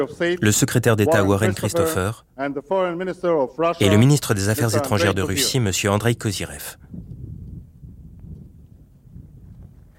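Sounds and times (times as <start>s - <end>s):
speech: 0.0s - 7.0s
wind blowing across microphone: 6.7s - 9.9s.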